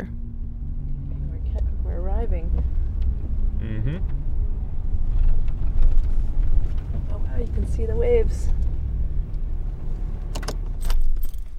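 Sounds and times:
diesel vehicle engine running: 0.0 - 11.5
speech: 2.3 - 2.8, 3.6 - 4.3, 7.4 - 8.6.

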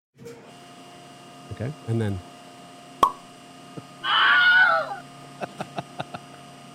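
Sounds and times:
speech: 1.6 - 2.3
steady electrical hum: 3.0 - 5.1
voice imitating an MRI machine: 4.0 - 5.0.

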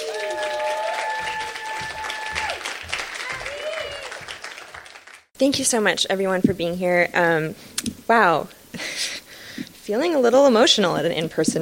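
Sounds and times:
audience voices calling out and cheering at a book reading: 0.0 - 4.8
audience clapping at a book reading: 0.0 - 5.3
speech: 5.4 - 8.9, 9.9 - 11.5.

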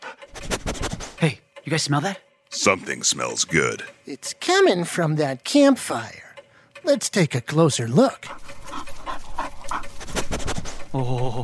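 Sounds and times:
dog panting: 0.0 - 1.2, 8.2 - 10.9
speech: 1.2 - 6.2, 6.8 - 8.5, 11.0 - 11.4.

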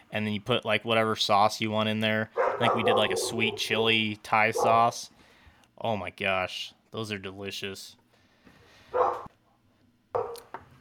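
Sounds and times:
speech: 0.1 - 5.2, 5.8 - 8.0
dogs barking in the next room: 2.3 - 5.0, 8.9 - 9.3, 10.2 - 10.5.

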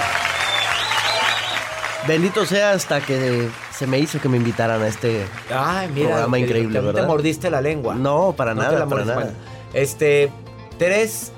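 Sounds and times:
studio audience applause: 0.0 - 6.4
speech: 2.0 - 11.3.

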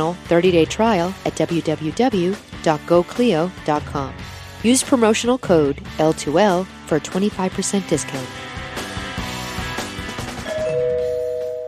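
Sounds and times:
speech: 0.0 - 8.5
doorbell chime ringing: 10.4 - 11.6.

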